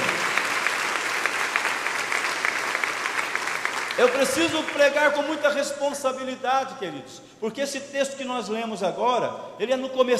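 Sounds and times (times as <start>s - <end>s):
audience applause: 0.0s - 5.0s
speech: 4.0s - 10.1s.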